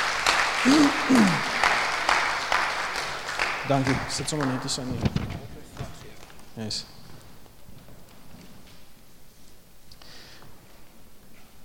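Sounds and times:
audience clapping: 0.0 - 6.8
speech: 0.6 - 1.5, 3.7 - 5.5, 6.6 - 6.9.

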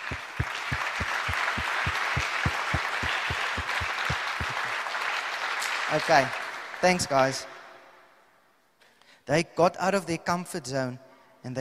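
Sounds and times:
audience applause: 0.0 - 6.8
speech: 5.9 - 7.5, 9.3 - 11.5.

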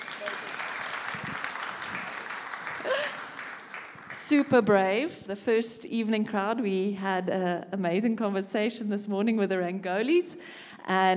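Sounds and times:
audience applause: 0.0 - 4.4
speech: 4.3 - 11.1.

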